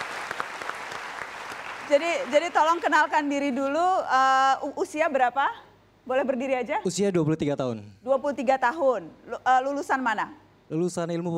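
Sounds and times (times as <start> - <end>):
audience applause: 0.0 - 3.0
speech: 1.9 - 11.3.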